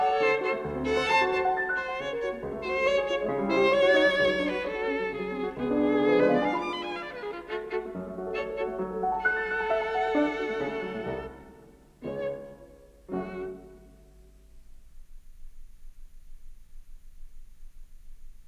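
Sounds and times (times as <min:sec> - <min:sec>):
violin in a sonata: 0:00.0 - 0:14.4
piano in a sonata: 0:00.0 - 0:18.4.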